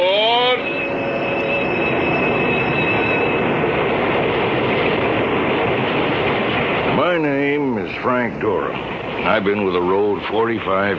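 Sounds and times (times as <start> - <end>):
high-pitched train wheel squeals: 0.0 - 3.6
electric commuter train rumbling along a platform: 0.0 - 10.9
speech: 8.0 - 10.9.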